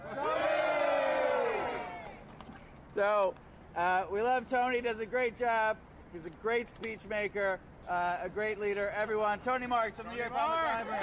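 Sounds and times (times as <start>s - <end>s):
crowd screaming: 0.0s - 2.2s
speech: 3.0s - 11.0s.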